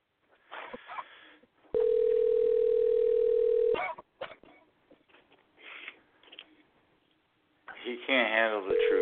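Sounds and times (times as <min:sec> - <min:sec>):
phone ringing on an unanswered call: 0:01.7 - 0:03.8, 0:08.7 - 0:09.0
speech: 0:08.0 - 0:09.0.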